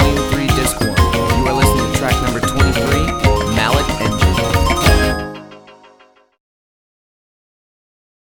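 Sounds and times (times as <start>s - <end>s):
mallet percussion: 0.0s - 5.8s.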